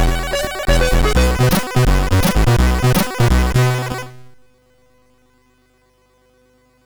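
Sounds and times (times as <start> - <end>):
chiptune music on a SID MOS6581R4 chip: 0.0 - 4.3.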